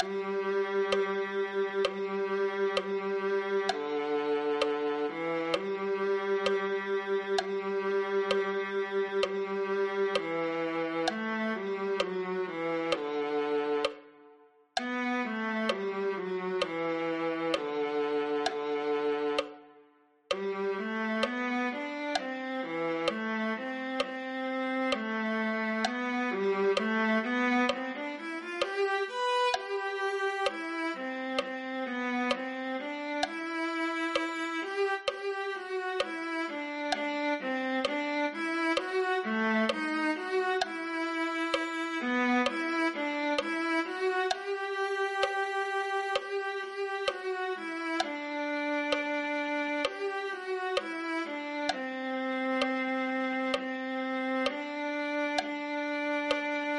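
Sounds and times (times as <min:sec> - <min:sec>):
viola: 0:00.0 - 0:56.7.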